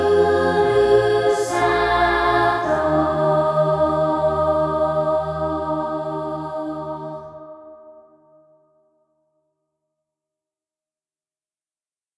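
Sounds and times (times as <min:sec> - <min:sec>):
choir singing: 0:00.0 - 0:08.4.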